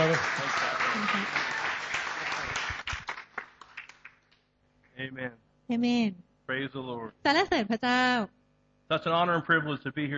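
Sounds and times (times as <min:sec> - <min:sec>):
audience applause welcoming a speaker: 0:00.0 - 0:04.2
speech: 0:00.1 - 0:01.6, 0:05.0 - 0:10.1.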